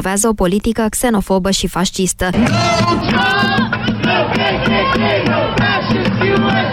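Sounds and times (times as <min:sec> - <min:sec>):
speech: 0:00.0 - 0:06.7
protesters chanting: 0:02.4 - 0:06.7.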